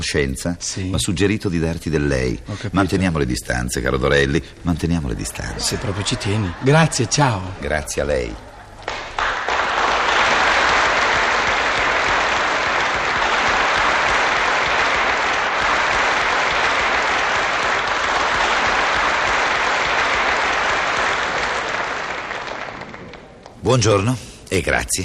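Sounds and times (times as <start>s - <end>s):
speech: 0.0s - 8.5s, 23.7s - 25.0s
laughter: 5.2s - 8.9s
audience applause: 5.4s - 7.5s, 8.1s - 23.6s.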